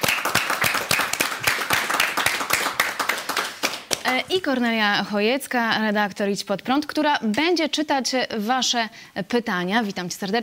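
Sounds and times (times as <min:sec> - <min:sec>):
studio audience applause in a Polish television studio: 0:00.0 - 0:04.2
speech: 0:04.1 - 0:10.4.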